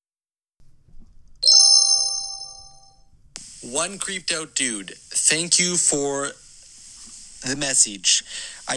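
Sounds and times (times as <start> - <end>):
phone chiming ring for an incoming call: 0.9 - 3.3
phone beep: 1.4 - 2.9
brief melodic passage: 1.4 - 3.0
speech: 3.8 - 6.4, 7.4 - 8.7.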